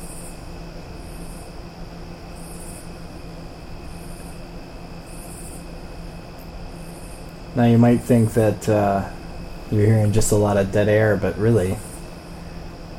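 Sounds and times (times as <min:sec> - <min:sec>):
fan whirring in the room: 0:00.0 - 0:12.9
speech: 0:07.6 - 0:11.9.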